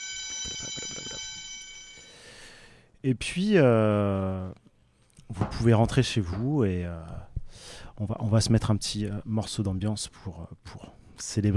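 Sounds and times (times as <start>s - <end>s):
school bell ringing: 0.0s - 2.3s
speech: 3.0s - 4.6s, 5.3s - 11.5s.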